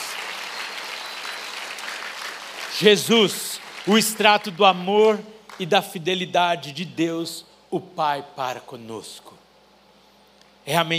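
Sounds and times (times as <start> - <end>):
audience applause: 0.0 - 4.7
speech: 2.8 - 9.4, 10.6 - 10.9.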